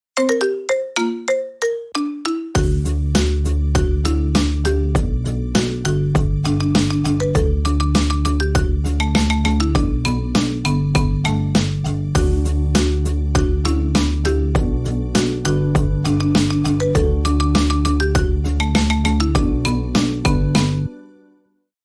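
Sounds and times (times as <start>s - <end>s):
marimba remix: 0.2s - 21.0s.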